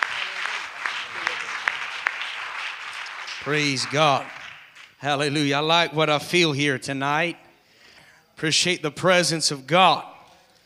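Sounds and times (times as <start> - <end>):
church congregation applauding in welcome for a guest minister: 0.0 - 5.6
speech: 3.4 - 4.4, 5.0 - 7.4, 8.4 - 10.1.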